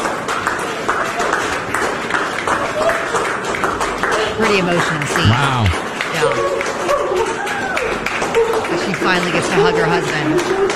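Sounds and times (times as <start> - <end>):
hospital staff clapping and cheering: 0.0 - 10.7
speech: 4.5 - 6.7, 9.0 - 10.7.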